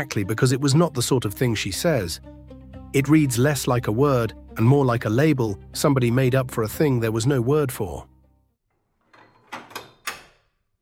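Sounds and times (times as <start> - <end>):
speech: 0.0 - 8.1
door bolt sliding: 8.9 - 10.6.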